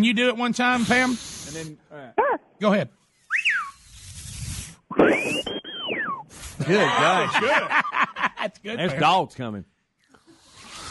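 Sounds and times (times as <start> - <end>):
speech: 0.0 - 3.0, 5.0 - 5.6, 6.6 - 9.7
loud shrill mouth whistle through the teeth: 3.1 - 6.6
laughter: 6.6 - 9.1.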